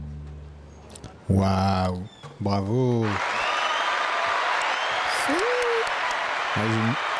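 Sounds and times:
speech: 1.3 - 3.4, 6.5 - 7.1
canned applause from an applause box: 3.0 - 7.1.

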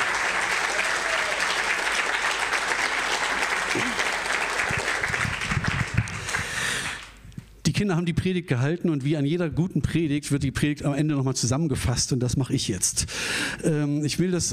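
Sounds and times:
audience applause in church: 0.0 - 7.2
speech: 7.8 - 14.5.

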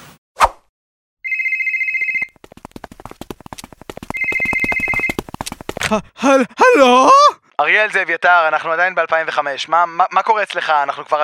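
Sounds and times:
telephone ringing on an outgoing call: 1.2 - 2.4, 4.1 - 5.2
rapid clicking pulses: 2.4 - 5.8
speech: 5.9 - 11.2.

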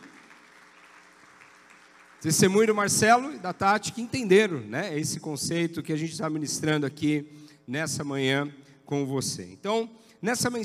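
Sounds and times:
audience applause: 0.0 - 2.7
speech: 2.2 - 10.6.

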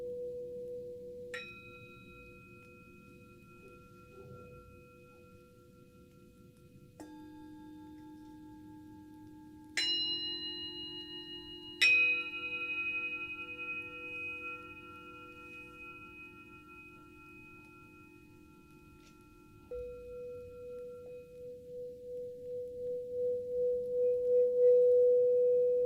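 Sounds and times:
Tibetan singing bowl ringing: 0.0 - 25.8.

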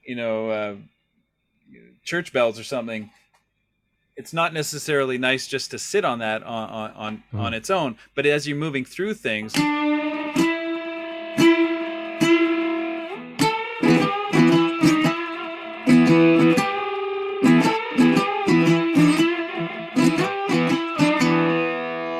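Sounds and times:
speech: 0.1 - 1.0, 1.7 - 3.2, 4.2 - 10.2
electric guitar through an effect with wild vibrato growl: 10.1 - 22.1.

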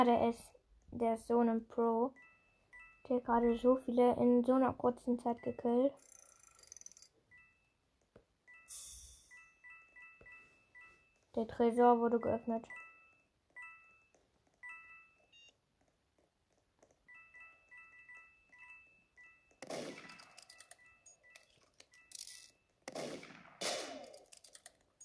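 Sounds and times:
speech: 0.0 - 2.3, 3.0 - 6.1, 11.4 - 12.8
Roblox electronic game beeps and tones: 1.9 - 4.1, 5.0 - 7.8, 8.5 - 15.6, 17.0 - 22.8
gunfire in the video game Roblox: 19.6 - 20.7, 22.8 - 24.5.

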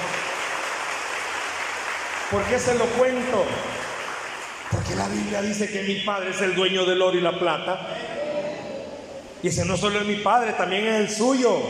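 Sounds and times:
audience applause: 0.0 - 5.4
speech: 2.3 - 3.9, 4.9 - 8.0, 9.4 - 11.6.

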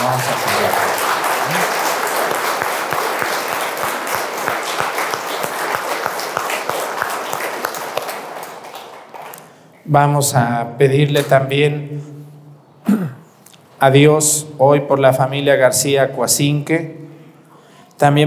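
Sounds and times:
audience applauding: 0.0 - 9.6
speech: 9.9 - 12.1, 13.8 - 17.0, 18.0 - 18.2.

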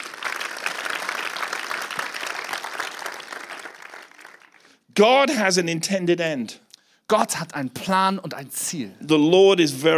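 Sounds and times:
audience clapping: 0.0 - 4.8
speech: 5.0 - 9.9.

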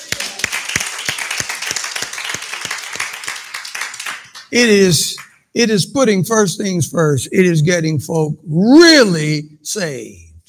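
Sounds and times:
audience clapping hands: 0.0 - 5.4
speech: 4.5 - 10.3.

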